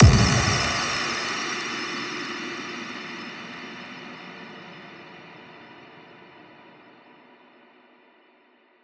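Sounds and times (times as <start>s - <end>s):
impact: 0.0s - 1.9s.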